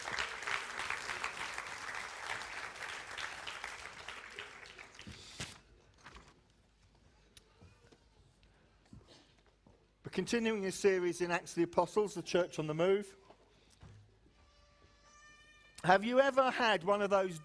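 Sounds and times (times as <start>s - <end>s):
audience applauding the musicians: 0.0s - 5.2s
speech: 10.2s - 13.2s, 15.9s - 17.4s.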